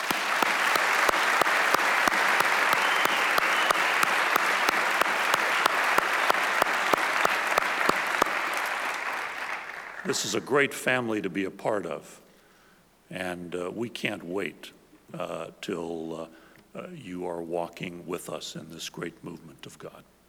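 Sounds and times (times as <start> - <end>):
audience applause welcoming guests at a Southwestern gathering: 0.0 - 10.4
speech: 10.1 - 12.2, 13.1 - 20.1.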